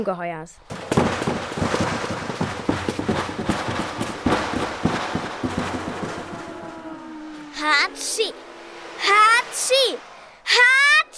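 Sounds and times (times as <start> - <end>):
speech: 0.0 - 1.5, 7.6 - 8.4, 9.0 - 10.9
cannons firing a broadside: 0.7 - 7.4.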